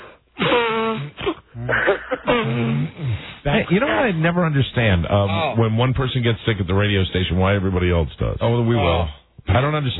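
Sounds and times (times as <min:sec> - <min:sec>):
person blowing nose: 0:00.0 - 0:01.5, 0:02.2 - 0:03.4
speech: 0:02.4 - 0:09.9.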